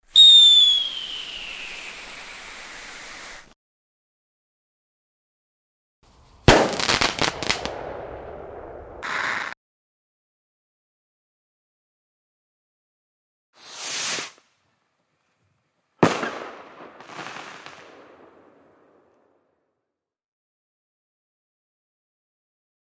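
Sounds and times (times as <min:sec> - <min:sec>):
fireworks for desensitization: 0:00.1 - 0:03.6, 0:06.2 - 0:09.6, 0:13.6 - 0:14.6, 0:16.0 - 0:19.3.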